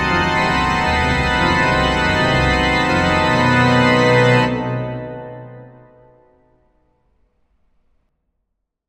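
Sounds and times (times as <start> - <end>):
dramatic organ music: 0.0 - 6.4.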